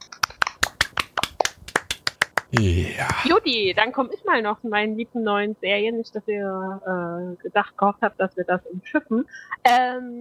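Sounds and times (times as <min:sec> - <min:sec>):
applause: 0:00.2 - 0:03.3
speech: 0:02.5 - 0:10.1.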